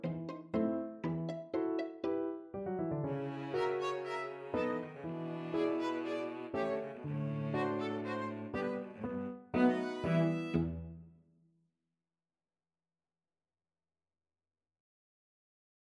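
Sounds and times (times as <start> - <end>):
piano quartet: 0.0 - 10.8.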